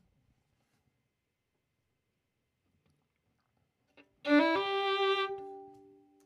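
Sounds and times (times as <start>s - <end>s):
violin: 4.2s - 6.1s.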